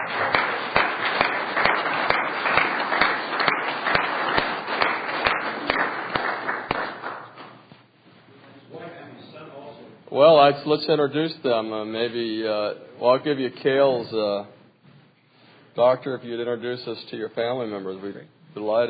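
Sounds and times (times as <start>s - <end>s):
crowd noise: 0.0s - 6.5s
meeting audience clapping to welcome a guest doctor: 0.0s - 7.6s
speech: 10.2s - 14.6s, 15.8s - 18.8s.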